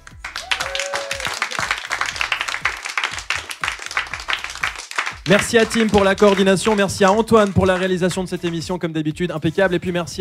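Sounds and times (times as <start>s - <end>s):
audience applause: 0.0s - 8.0s
speech: 5.3s - 10.2s.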